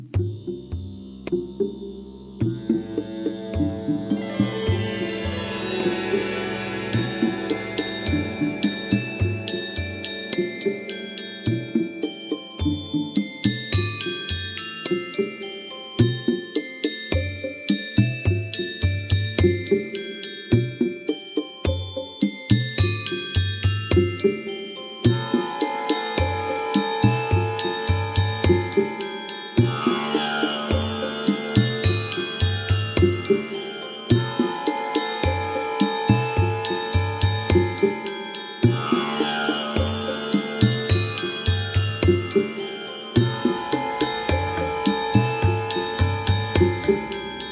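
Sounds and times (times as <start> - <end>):
ambient music: 0.2 - 16.6, 17.1 - 47.5.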